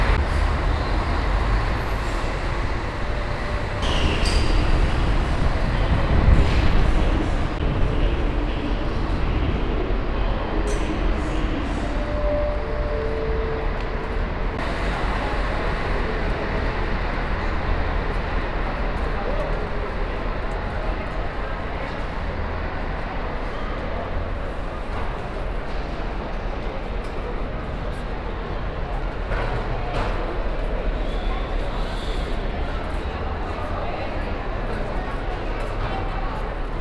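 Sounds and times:
outdoor rushing noise in Brazil: 0.0 - 36.7.

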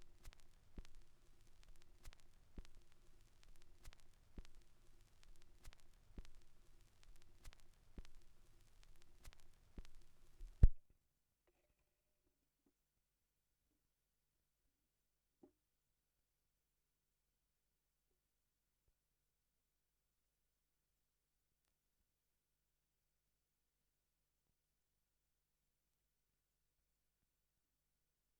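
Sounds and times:
vinyl record noise: 0.0 - 10.8.

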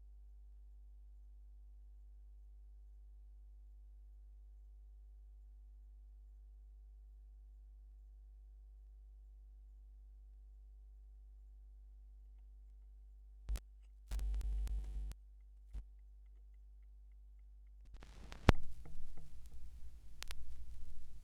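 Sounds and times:
vinyl record noise: 13.5 - 15.2, 17.9 - 21.2.

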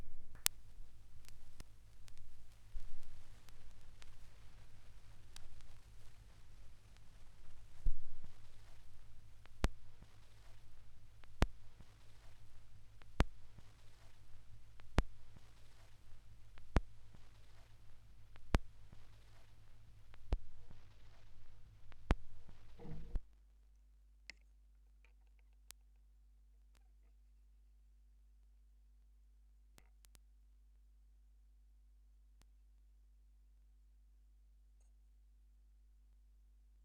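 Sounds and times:
vinyl record noise: 0.0 - 23.3.

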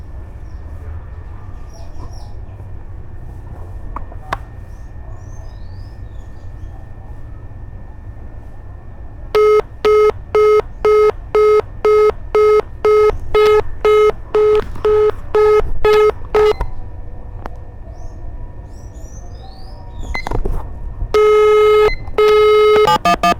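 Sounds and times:
telephone in Brazil: 9.4 - 16.6, 21.2 - 23.3.

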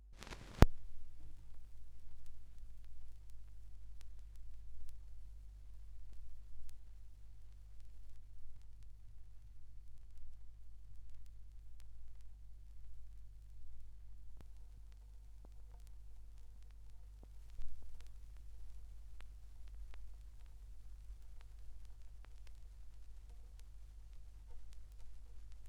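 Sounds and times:
vinyl record noise: 0.1 - 25.6.

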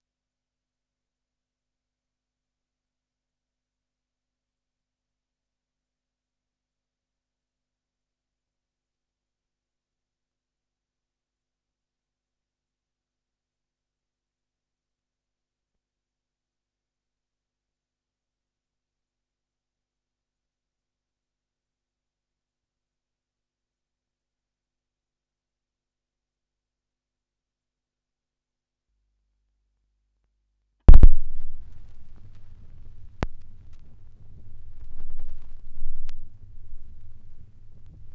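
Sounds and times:
gramophone record noise at 16 rpm: 30.9 - 38.1.

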